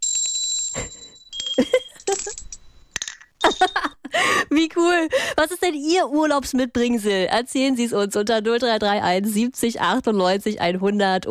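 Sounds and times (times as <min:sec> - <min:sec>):
small handcrafted bells brought back from a holiday jingling: 0:00.0 - 0:04.1
speech: 0:01.6 - 0:01.8, 0:04.6 - 0:11.2.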